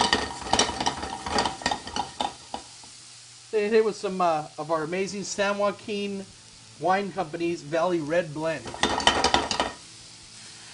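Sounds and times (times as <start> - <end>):
utensil scraping and clicking against a pan of raspberries and sugar: 0.0 - 2.7, 8.6 - 9.8
raspberries and sugar sizzling in a pan: 0.0 - 10.7
speech: 3.6 - 9.0.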